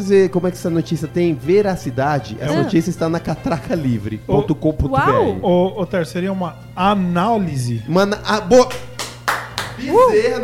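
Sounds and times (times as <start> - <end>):
speech: 0.0 - 8.9, 9.8 - 10.4
applause sound effect: 8.7 - 10.0.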